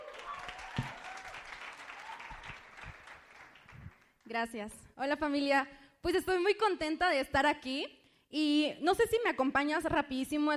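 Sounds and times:
audience applause: 0.0s - 4.1s
speech: 4.3s - 10.5s.

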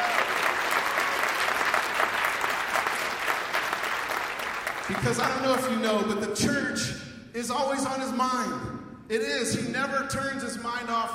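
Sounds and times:
church congregation applause for their pastor: 0.0s - 5.8s
speech: 4.9s - 11.1s.

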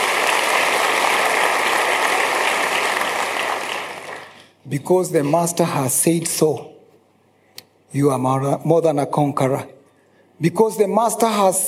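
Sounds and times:
audience hand clapping: 0.0s - 4.6s
speech: 4.7s - 6.7s, 7.9s - 9.8s, 10.4s - 11.6s.

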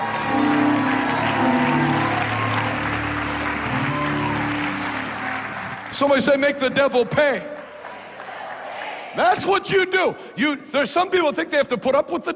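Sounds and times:
low musical tone: 0.0s - 6.0s
crowd clapping: 0.0s - 9.5s
speech: 6.0s - 7.5s, 9.2s - 12.3s.

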